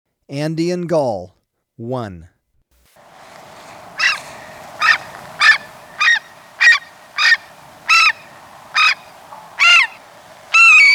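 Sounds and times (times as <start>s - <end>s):
Andean gull calling: 3.0s - 10.9s.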